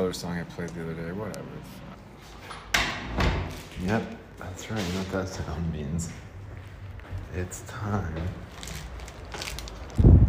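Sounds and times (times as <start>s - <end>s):
speech: 0.1s - 3.1s, 3.8s - 6.3s, 7.3s - 8.7s
wind blowing outdoors: 9.6s - 10.2s.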